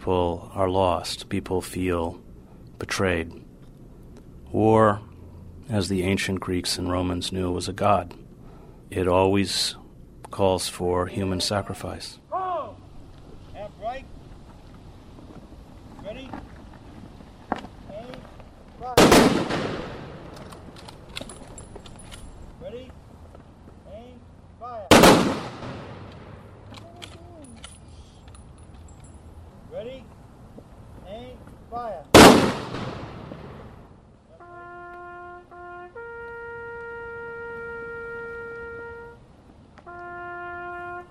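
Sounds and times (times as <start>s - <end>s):
speech: 0.0s - 2.2s, 2.8s - 3.4s, 4.5s - 5.1s, 5.7s - 8.2s, 8.9s - 12.2s
ceremonial rifle volley blasts: 19.0s - 22.3s, 24.9s - 28.4s, 32.1s - 33.4s.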